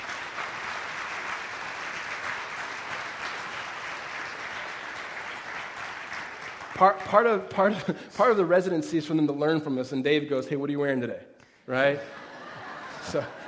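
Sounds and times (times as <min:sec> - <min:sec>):
audience applause welcoming a speaker onto the stage: 0:00.0 - 0:07.8
speech: 0:06.8 - 0:12.2, 0:13.0 - 0:13.4
laughter: 0:11.8 - 0:13.4.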